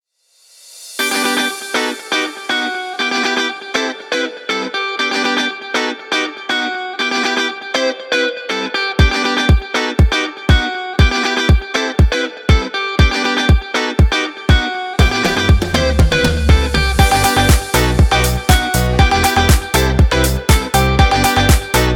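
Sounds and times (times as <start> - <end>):
summer happy upbeat music: 1.0 - 7.5, 8.9 - 21.9.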